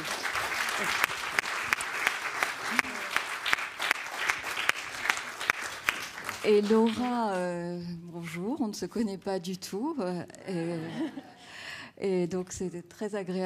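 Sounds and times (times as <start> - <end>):
audience applauding: 0.0 - 7.5
speech: 0.8 - 1.1, 6.4 - 11.3, 12.0 - 13.4
laughter: 10.5 - 11.4.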